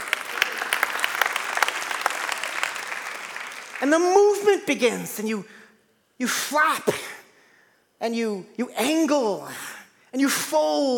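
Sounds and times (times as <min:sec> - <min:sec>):
audience applause: 0:00.0 - 0:04.0
speech: 0:03.8 - 0:05.6, 0:06.2 - 0:07.0, 0:08.0 - 0:10.9.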